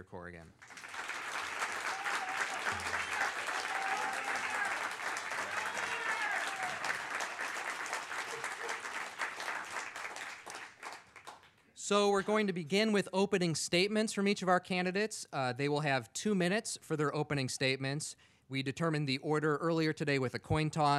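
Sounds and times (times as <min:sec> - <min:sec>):
speech: 0:00.0 - 0:00.9, 0:11.9 - 0:20.9
audience applause welcoming candidates at the Cuyahoga County Executive debate: 0:00.6 - 0:11.5.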